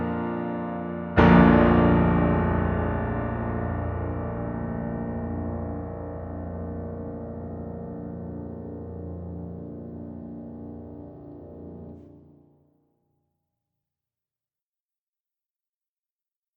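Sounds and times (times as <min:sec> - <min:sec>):
piano duet: 0:00.0 - 0:12.5.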